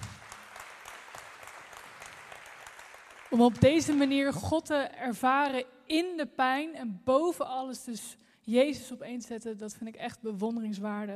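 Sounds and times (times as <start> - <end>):
audience applause: 0.0 - 4.1
speech: 3.3 - 11.1.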